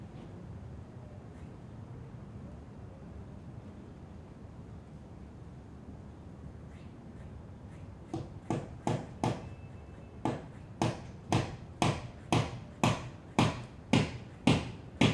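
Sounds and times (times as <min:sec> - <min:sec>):
sounds outside the window: 0:00.0 - 0:15.1
hammer knocking indoors: 0:08.1 - 0:09.5, 0:10.2 - 0:15.1.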